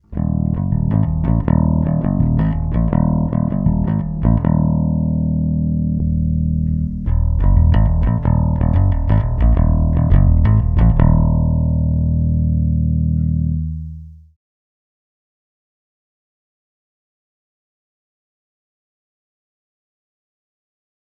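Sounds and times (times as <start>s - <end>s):
bass amp with EQ switched off and on: 0.0s - 14.4s.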